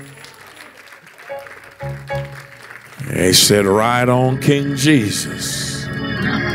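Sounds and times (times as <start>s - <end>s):
audience applause: 0.0s - 3.7s
sustained musical tones: 1.3s - 6.5s
speech: 3.1s - 6.5s.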